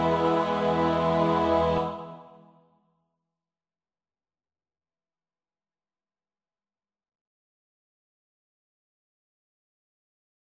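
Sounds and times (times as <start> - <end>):
soprano alto tenor bass voices: 0.0 - 2.4.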